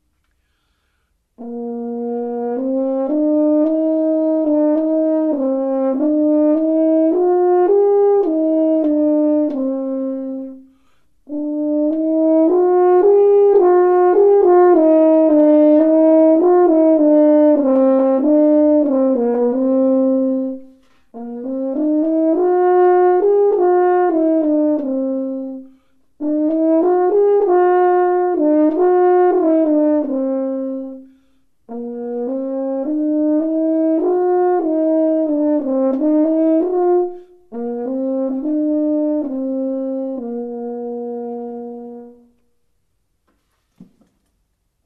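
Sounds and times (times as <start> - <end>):
horn: 0.1 - 42.8.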